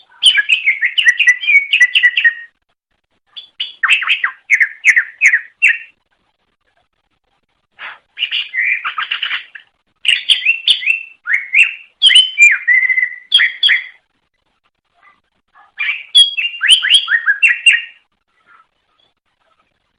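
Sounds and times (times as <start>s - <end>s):
leafbird chattering whistled song: 0.0s - 2.5s, 3.3s - 6.0s, 7.9s - 14.0s, 15.8s - 19.2s.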